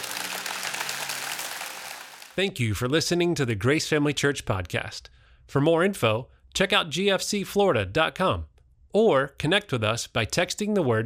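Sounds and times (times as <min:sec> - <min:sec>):
audience clapping: 0:00.0 - 0:02.4
speech: 0:02.4 - 0:11.0.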